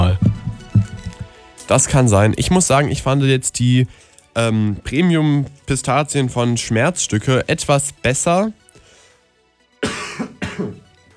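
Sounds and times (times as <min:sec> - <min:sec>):
speech: 0:01.7 - 0:08.6, 0:10.6 - 0:10.8
harsh coughs: 0:09.8 - 0:10.9.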